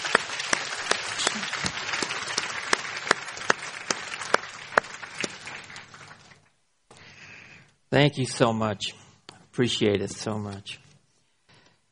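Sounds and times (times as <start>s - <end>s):
audience applause: 0.0s - 6.5s
speech: 7.9s - 9.0s, 9.6s - 10.8s.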